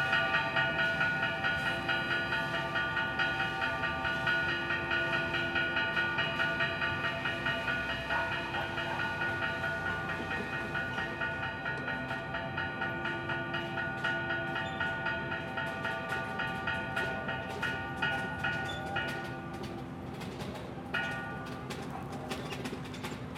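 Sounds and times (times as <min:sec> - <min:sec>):
cathedral bells ringing in Ayaviri: 0:00.0 - 0:23.3.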